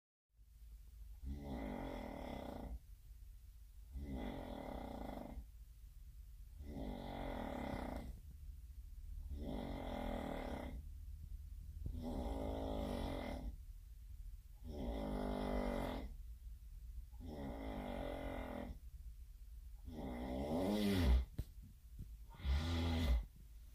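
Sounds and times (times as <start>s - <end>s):
roommate snoring: 1.2s - 2.8s, 3.9s - 5.4s, 6.6s - 8.2s, 9.3s - 10.8s, 11.9s - 13.6s, 14.6s - 16.2s, 17.2s - 18.8s, 19.8s - 21.3s, 22.3s - 23.3s.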